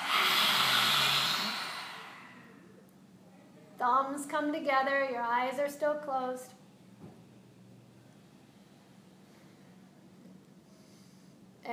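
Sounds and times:
lion's breath exhale with tongue out: 0:00.0 - 0:02.5
speech: 0:03.8 - 0:06.6.

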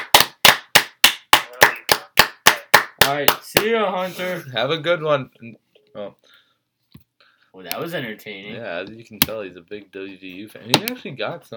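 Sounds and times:
hand clapping: 0:00.0 - 0:03.8
speech: 0:03.1 - 0:06.4, 0:07.6 - 0:11.5.

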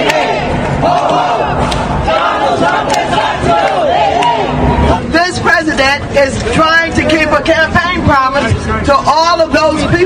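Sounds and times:
heated crowd of protesters shouting: 0:00.0 - 0:05.2
angry protest chanting: 0:00.0 - 0:10.0
speech: 0:09.7 - 0:10.0.

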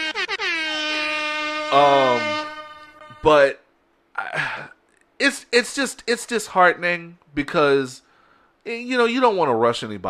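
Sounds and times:
air horn sound effect: 0:00.0 - 0:03.6
speech: 0:01.7 - 0:02.4, 0:03.2 - 0:03.6, 0:04.2 - 0:08.0, 0:08.6 - 0:10.0.

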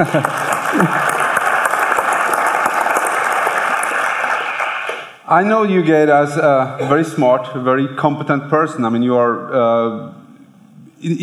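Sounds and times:
speech: 0:00.0 - 0:01.2, 0:05.3 - 0:10.2, 0:11.0 - 0:11.2
laughter: 0:00.0 - 0:05.1
crowd applauding: 0:00.0 - 0:05.2.

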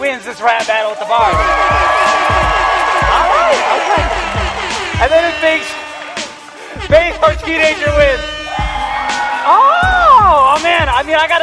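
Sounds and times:
speech: 0:00.1 - 0:02.6, 0:06.9 - 0:08.3, 0:09.5 - 0:10.0, 0:10.6 - 0:11.4
people whooping and yelling: 0:01.2 - 0:06.4, 0:08.3 - 0:10.3
crowd cheering and applauding: 0:01.2 - 0:10.6.

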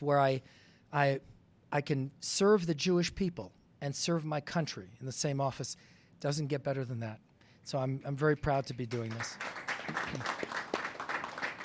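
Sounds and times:
speech: 0:00.0 - 0:10.4
audience clapping and snapping: 0:08.9 - 0:11.6.

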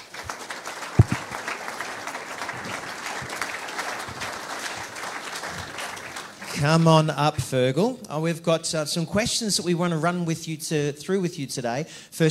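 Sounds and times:
audience applause welcoming a guest speaker at a Sunday talk on addiction: 0:00.0 - 0:07.2
speech: 0:06.6 - 0:12.2.

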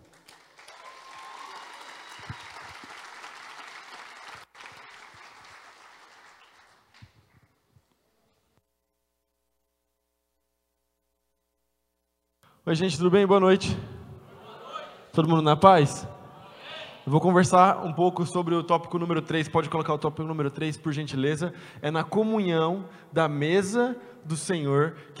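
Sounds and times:
audience applauding: 0:00.0 - 0:07.2
speech: 0:12.7 - 0:13.9, 0:15.2 - 0:16.1, 0:17.1 - 0:25.1.

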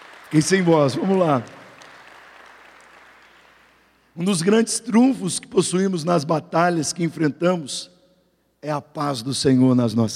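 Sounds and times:
audience applauding: 0:00.0 - 0:04.0
speech: 0:00.3 - 0:01.6, 0:04.2 - 0:08.0, 0:08.6 - 0:10.1.

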